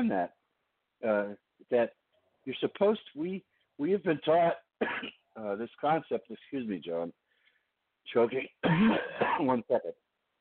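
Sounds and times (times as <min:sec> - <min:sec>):
speech: 0:00.0 - 0:00.4, 0:01.0 - 0:07.2, 0:08.0 - 0:10.0
person coughing and clearing throat from choking on air: 0:04.8 - 0:05.2, 0:08.6 - 0:09.6.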